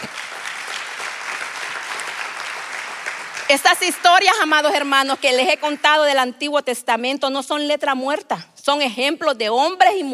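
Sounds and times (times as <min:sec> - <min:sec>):
audience applause: 0:00.0 - 0:06.0
speech: 0:03.5 - 0:10.1.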